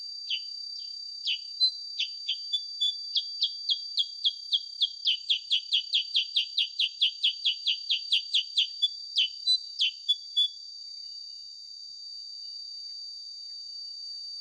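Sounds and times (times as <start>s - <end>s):
sooty-headed bulbul chirping: 1.3s - 10.5s.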